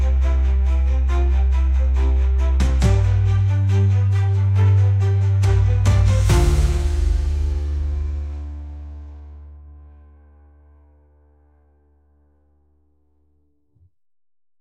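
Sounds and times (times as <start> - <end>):
background music: 0.0 - 10.2.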